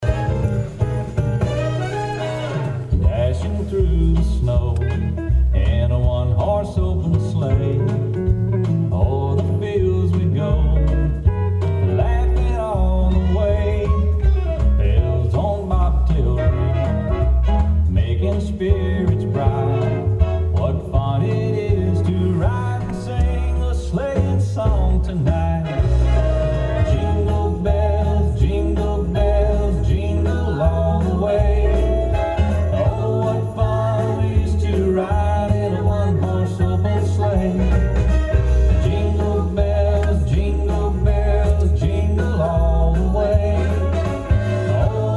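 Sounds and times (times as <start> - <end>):
Christmas song: 0.0 - 45.1.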